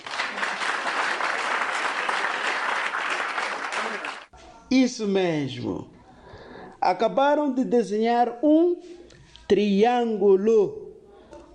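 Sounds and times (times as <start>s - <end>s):
group applause: 0.0s - 4.3s
speech: 4.7s - 5.9s, 6.8s - 10.8s.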